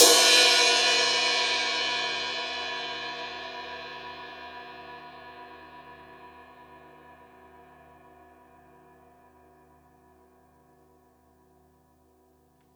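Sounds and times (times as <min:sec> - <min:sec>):
crash cymbal on a drum kit: 0:00.0 - 0:06.1.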